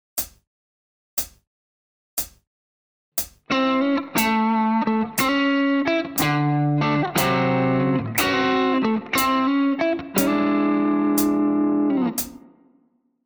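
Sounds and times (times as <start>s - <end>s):
musical lick: 3.6s - 12.4s.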